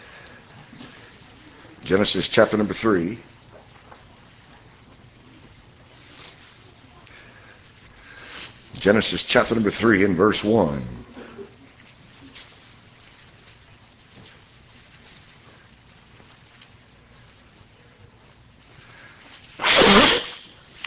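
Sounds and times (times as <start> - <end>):
low hum: 0.0 - 20.8
speech: 1.8 - 3.4, 8.8 - 11.1
nose blowing and coughing: 19.6 - 20.5.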